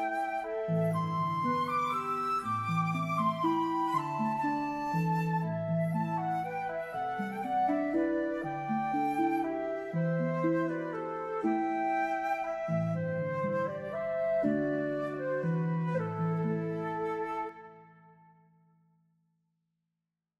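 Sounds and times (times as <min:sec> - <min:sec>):
harp: 0:00.0 - 0:18.4
flute: 0:00.0 - 0:18.6.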